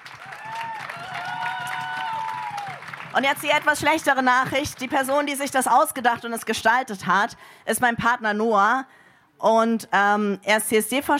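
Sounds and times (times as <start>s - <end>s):
crowd applause and cheers: 0.0s - 4.0s
speech: 3.2s - 11.1s.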